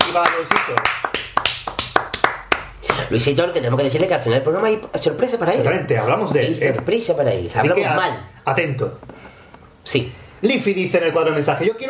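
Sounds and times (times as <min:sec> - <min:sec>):
hand clapping: 0:00.0 - 0:03.1
speech: 0:00.2 - 0:01.1, 0:03.1 - 0:09.1, 0:09.8 - 0:11.8.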